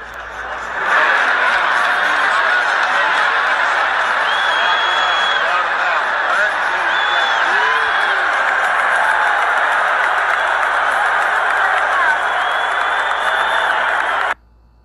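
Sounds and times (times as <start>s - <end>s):
crowd cheering at a UFC match: 0.0s - 14.4s
laughter: 0.0s - 14.4s.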